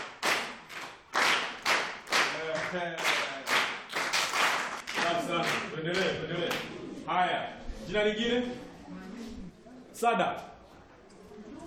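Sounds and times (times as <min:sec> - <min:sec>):
class of pupils clapping for a classmate: 0:00.0 - 0:06.7
speech: 0:02.7 - 0:03.1, 0:05.2 - 0:09.3, 0:10.0 - 0:10.5.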